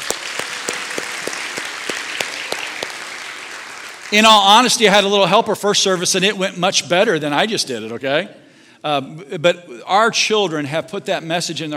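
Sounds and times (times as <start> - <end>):
audience applause: 0.0 - 4.8
speech: 4.1 - 11.7.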